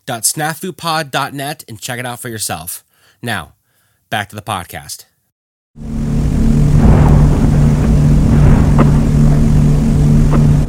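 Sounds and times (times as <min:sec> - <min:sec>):
speech: 0:00.1 - 0:05.1, 0:05.8 - 0:06.0
aircraft engines roaring: 0:05.9 - 0:10.6.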